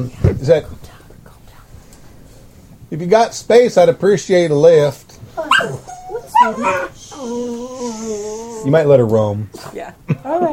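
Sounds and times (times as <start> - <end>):
speech: 0.0 - 1.0, 2.9 - 7.6, 8.6 - 10.5
puppy whimpering and yipping: 5.4 - 8.7.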